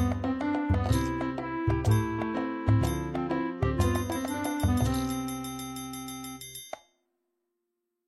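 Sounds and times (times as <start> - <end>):
piano duet: 0.0 - 5.4.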